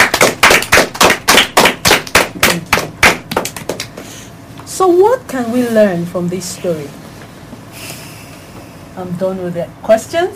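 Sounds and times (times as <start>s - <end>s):
applause: 0.0s - 4.0s
speech: 4.8s - 7.0s, 9.0s - 10.3s.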